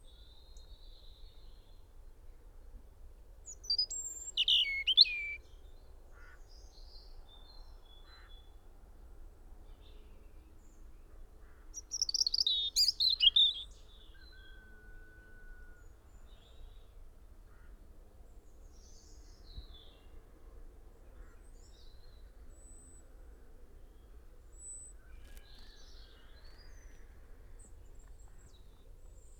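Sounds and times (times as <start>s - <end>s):
European robin singing: 3.5s - 5.4s, 11.8s - 14.5s.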